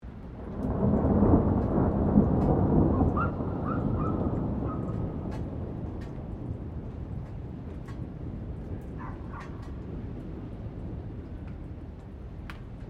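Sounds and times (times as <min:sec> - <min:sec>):
thunder: 0:00.1 - 0:12.8
distant dog barking: 0:03.1 - 0:05.0, 0:09.0 - 0:09.6.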